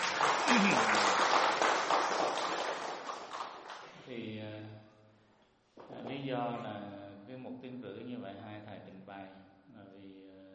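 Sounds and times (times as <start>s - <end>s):
audience applause at a Vietnamese Buddhist teaching session: 0.0s - 3.9s
voice: 0.5s - 1.0s, 5.9s - 10.4s.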